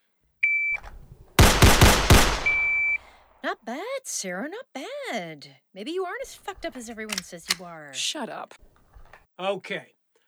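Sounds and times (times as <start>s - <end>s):
shrill electronic beep: 0.4s - 0.9s, 2.4s - 3.0s
pistol shots fired from the holster at a shooting range: 0.8s - 3.0s
speech: 3.4s - 8.8s, 9.4s - 10.0s.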